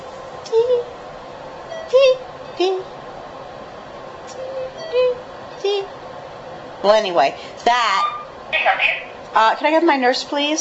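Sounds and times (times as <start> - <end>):
steady hum: 0.0 - 10.6
chemotherapy infusion pump beeping: 1.7 - 2.1, 4.3 - 5.7
speech: 6.8 - 10.6.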